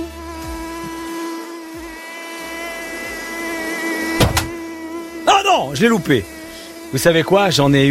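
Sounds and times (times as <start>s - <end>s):
mosquito wingbeat buzz: 0.0s - 7.9s
speech: 5.7s - 7.9s.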